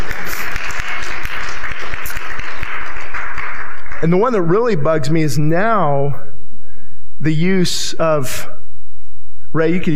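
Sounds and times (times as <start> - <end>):
audience clapping: 0.0 - 4.8
speech: 4.0 - 6.3, 7.2 - 8.6, 9.5 - 9.9.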